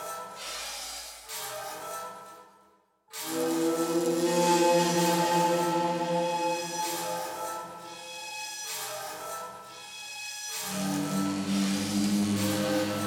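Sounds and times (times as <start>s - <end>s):
classic horror sci-fi action music loop: 3.2s - 8.3s, 10.5s - 13.0s.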